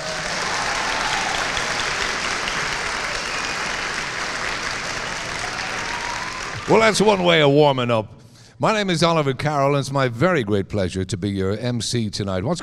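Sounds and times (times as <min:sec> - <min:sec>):
audience applause at the Dungarvan Community Concert 2022 in the Friary Church, Dungarvan: 0:00.0 - 0:07.5
speech: 0:06.7 - 0:12.6.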